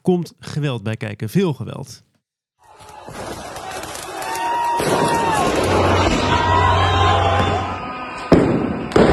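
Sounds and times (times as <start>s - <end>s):
speech: 0.0s - 2.1s
dense crowd of street protesters roaring and shouting: 2.6s - 8.2s.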